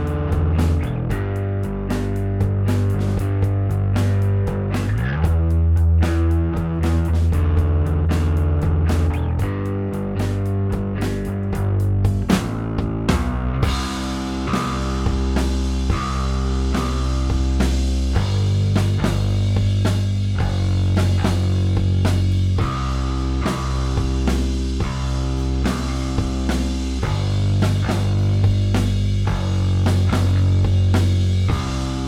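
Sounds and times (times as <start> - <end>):
bass: 0.0 - 32.0
drums: 0.0 - 32.0.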